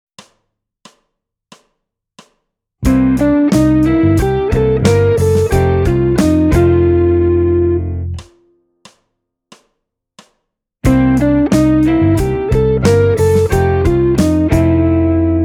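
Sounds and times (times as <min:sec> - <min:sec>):
blues music: 0:02.8 - 0:08.3, 0:10.8 - 0:15.4.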